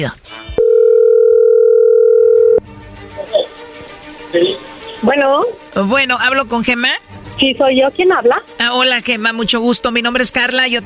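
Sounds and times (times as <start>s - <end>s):
speech: 0.0s - 0.2s, 4.3s - 10.8s
telephone dial tone: 0.6s - 2.6s.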